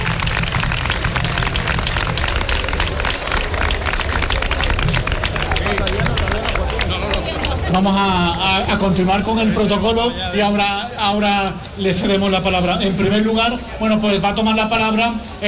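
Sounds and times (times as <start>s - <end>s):
audience applauding: 0.0s - 9.1s
crowd murmuring: 0.0s - 15.4s
speech: 7.8s - 15.4s.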